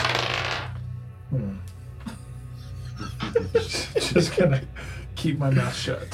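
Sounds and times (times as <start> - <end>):
dice being rolled: 0.0 - 0.8
speech: 1.3 - 2.2, 3.3 - 6.1
laughter: 2.0 - 5.0.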